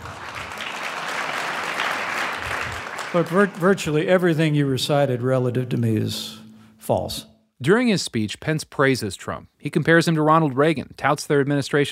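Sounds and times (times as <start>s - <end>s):
audience applause: 0.0s - 5.2s
speech: 3.1s - 11.9s.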